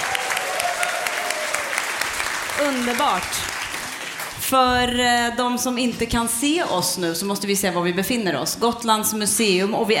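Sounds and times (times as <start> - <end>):
audience applause in the Fornsalen hall of Gotland Museum: 0.0 - 4.6
speech: 2.6 - 3.5, 4.5 - 9.9.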